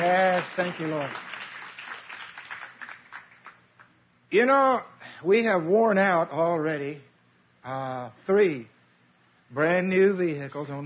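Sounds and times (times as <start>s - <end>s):
congregation applause at a church service: 0.0s - 3.9s
speech: 0.4s - 1.3s, 4.3s - 8.7s, 9.5s - 10.8s.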